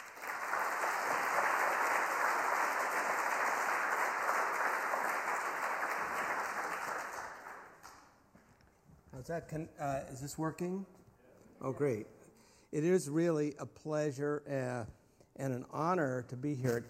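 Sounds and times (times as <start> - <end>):
audience applause welcoming a speaker at Cornell: 0.0 - 8.0
speech: 9.2 - 11.0, 11.6 - 16.8.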